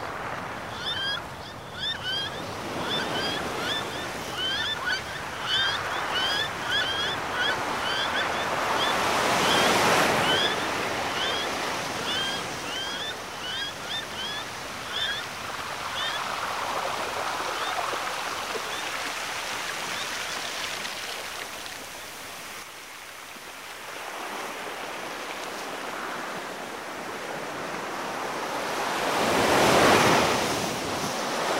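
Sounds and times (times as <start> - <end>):
reversed ocean waves: 0.0 - 31.5.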